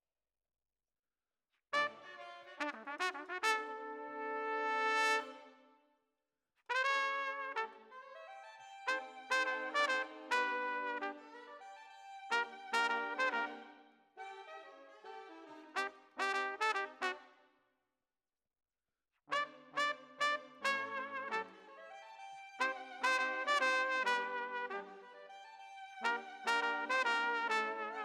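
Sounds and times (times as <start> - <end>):
trumpet: 1.8 - 5.7, 6.7 - 17.4, 19.3 - 21.9, 22.6 - 25.4, 26.0 - 28.0.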